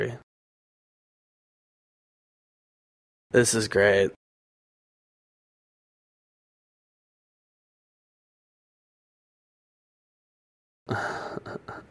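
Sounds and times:
speech: 0:00.0 - 0:00.2, 0:03.3 - 0:04.2, 0:10.9 - 0:11.8
coughing: 0:10.9 - 0:11.8.

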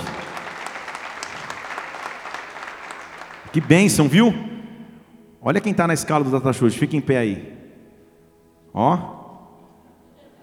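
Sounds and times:
audience applause: 0:00.0 - 0:04.1
speech: 0:03.6 - 0:04.5, 0:05.4 - 0:07.6, 0:08.7 - 0:09.2.

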